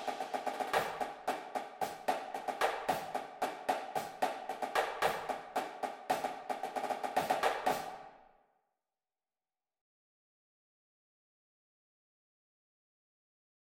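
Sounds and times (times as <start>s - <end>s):
snare drum: 0.0s - 8.1s.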